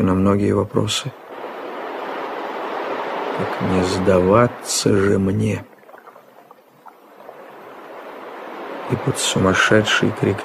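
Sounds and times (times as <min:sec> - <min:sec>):
speech: 0:00.0 - 0:01.2, 0:03.4 - 0:05.7, 0:08.9 - 0:10.4
ocean waves crashing: 0:01.2 - 0:10.4.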